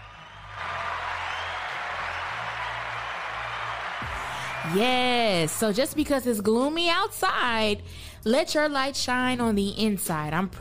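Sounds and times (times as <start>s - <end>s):
audience applause: 0.0s - 5.7s
speech: 4.6s - 10.6s.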